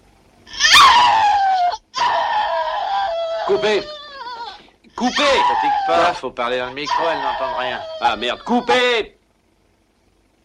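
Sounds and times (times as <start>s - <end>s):
woman screaming in a shower scene: 0.5s - 6.2s, 6.8s - 9.0s
speech: 3.5s - 4.0s, 5.0s - 9.2s.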